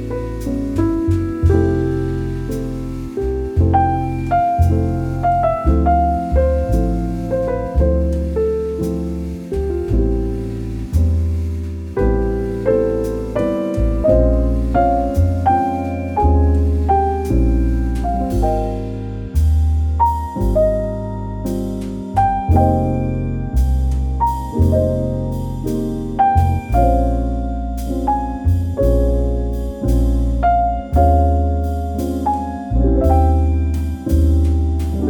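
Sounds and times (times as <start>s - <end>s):
slow cozy relaxing melodic jazz: 0.0s - 35.0s.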